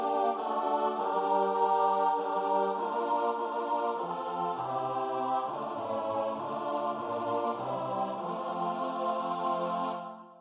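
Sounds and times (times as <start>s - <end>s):
choir singing: 0.0s - 10.4s.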